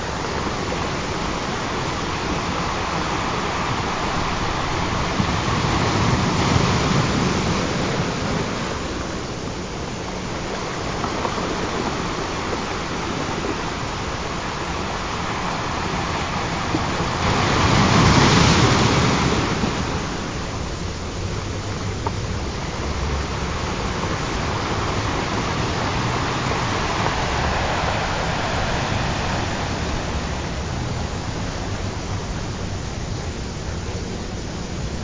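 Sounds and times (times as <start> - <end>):
ocean waves: 0.0 - 35.0.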